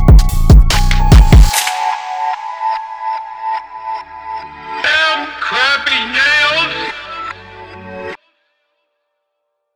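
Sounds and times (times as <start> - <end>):
non-copyright drill beat: 0.0 - 7.4.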